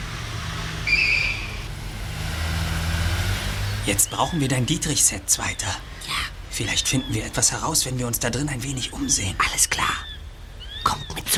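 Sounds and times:
green Ford car engine starting and driving away: 0.0 - 8.8
speech: 3.9 - 10.1.

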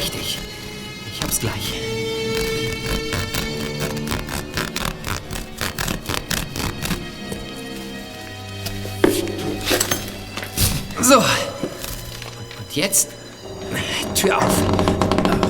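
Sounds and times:
handsaw sawing: 1.1 - 15.4
speech: 1.3 - 2.0, 12.8 - 13.1, 14.2 - 14.7
metallic clink: 9.1 - 10.5.

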